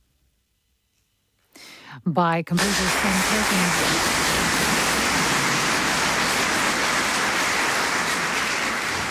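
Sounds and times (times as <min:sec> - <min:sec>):
speech: 0:02.0 - 0:04.4
audience applause after live piano performance: 0:02.6 - 0:09.0.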